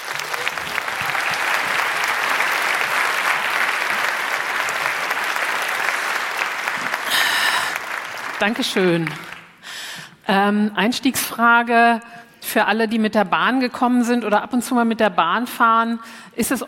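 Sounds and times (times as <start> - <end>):
applause: 0.0 - 9.8
speech: 8.4 - 9.3, 10.3 - 16.6.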